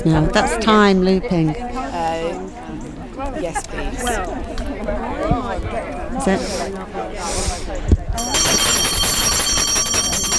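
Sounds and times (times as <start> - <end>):
speech: 0.0 - 2.4, 3.4 - 8.4
bell ringing: 8.2 - 10.3.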